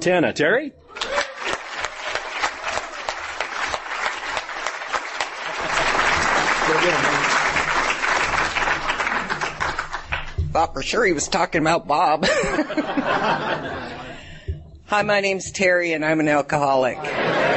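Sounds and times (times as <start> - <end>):
speech: 0.0 - 0.9, 6.7 - 7.3, 10.6 - 14.0, 14.9 - 17.3
audience applause: 0.9 - 10.4
laughter: 5.1 - 10.1, 12.2 - 14.5, 17.0 - 17.5.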